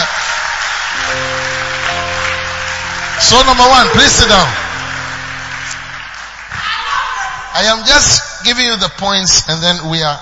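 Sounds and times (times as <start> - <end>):
audience clapping: 0.0 - 7.7
speech: 3.3 - 4.6, 7.6 - 10.1.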